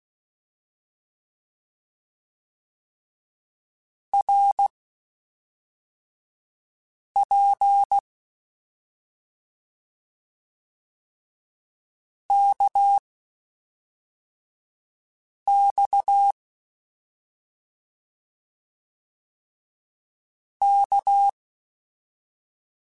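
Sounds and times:
CW Morse code groups in mixed short runs: 4.2s - 4.7s, 12.3s - 13.0s, 15.5s - 16.3s, 20.6s - 21.4s.

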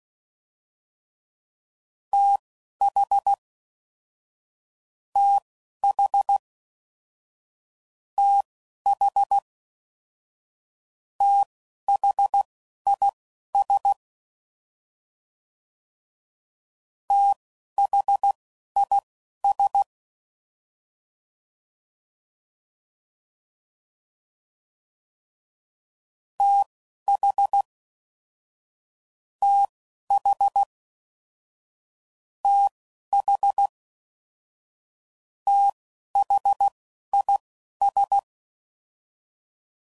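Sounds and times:
Morse code CW code groups: 5.2s - 6.4s, 8.2s - 9.4s, 11.2s - 14.0s, 17.1s - 19.9s, 26.4s - 27.6s, 29.4s - 30.7s, 32.5s - 33.7s, 35.5s - 38.2s.

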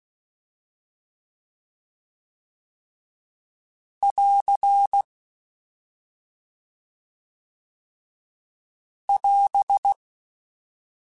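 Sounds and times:
Morse code CW code groups: 4.0s - 5.1s, 9.1s - 10.0s.

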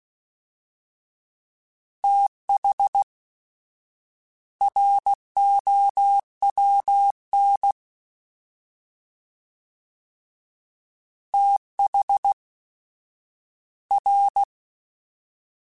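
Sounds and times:
fast CW Morse code groups: 2.0s - 3.0s, 4.6s - 7.8s, 11.4s - 12.4s, 13.9s - 14.5s.

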